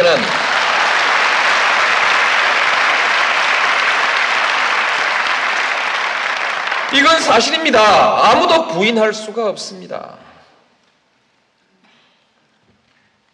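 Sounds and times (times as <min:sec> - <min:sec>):
audience applause: 0:00.0 - 0:08.4
speech: 0:07.0 - 0:10.2.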